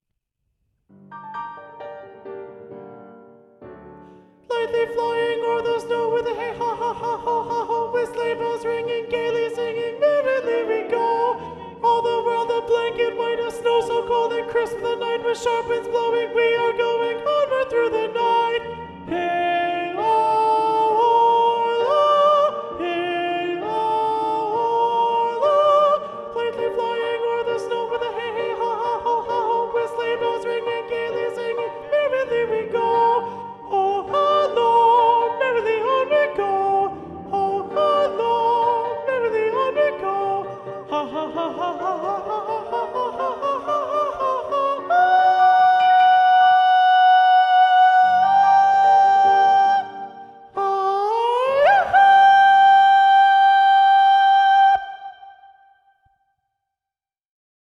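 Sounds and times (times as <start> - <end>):
soprano voices singing: 4.5 - 55.5.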